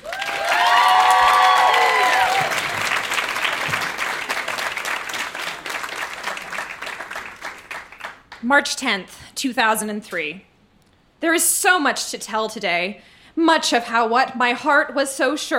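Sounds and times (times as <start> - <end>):
high whoops and cheers: 0.0 - 2.9
audience applause welcoming performer to stage: 0.0 - 8.4
speech: 8.5 - 10.5, 11.2 - 15.5.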